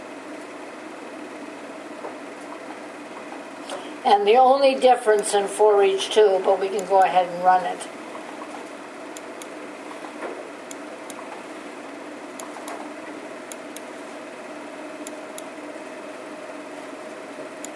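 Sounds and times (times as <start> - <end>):
steady low machine hum: 0.0 - 17.7
speech: 4.0 - 8.0
computer clicking: 12.4 - 12.8, 13.5 - 13.9, 17.6 - 17.7.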